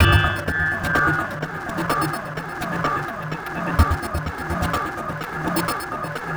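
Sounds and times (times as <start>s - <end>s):
drum and bass rhythm effect: 0.0s - 6.2s.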